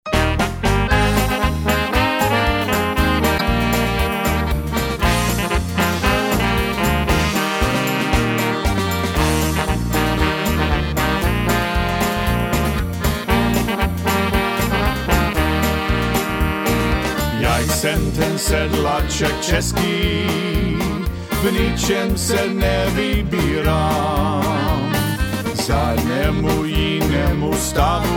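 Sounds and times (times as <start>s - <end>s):
Czech polka music: 0.0s - 28.1s.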